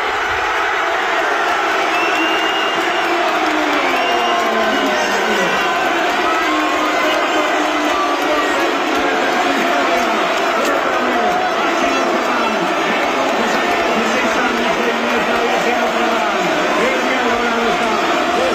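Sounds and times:
crowd cheering for its champions in a packed town square: 0.0 - 18.5
whoops and shouts: 1.2 - 10.0.

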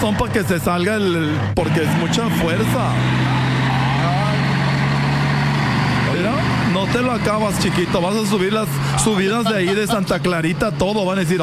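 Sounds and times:
speech: 0.0 - 3.5, 6.9 - 11.4
Dyna truck engine idling in a vehicle: 0.0 - 11.4
laughter: 8.7 - 10.5.

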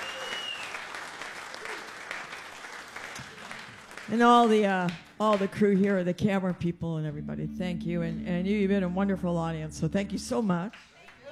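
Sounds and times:
audience clapping for a live show's sound engineer: 0.0 - 5.5
speech: 4.1 - 10.9.

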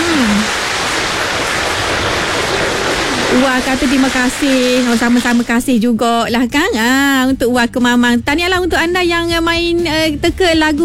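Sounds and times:
applause: 0.0 - 5.4
speech: 3.5 - 10.8.

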